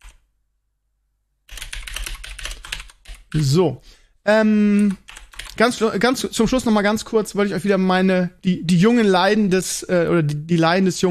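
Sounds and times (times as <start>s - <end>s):
keyboard typing a note onto a list: 0.0s - 0.2s, 1.5s - 3.4s, 4.7s - 6.1s
speech: 3.3s - 5.0s, 5.6s - 11.0s.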